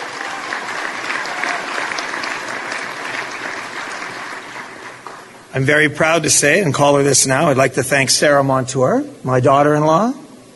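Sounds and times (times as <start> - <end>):
audience applause: 0.0 - 5.5
speech: 5.6 - 10.2.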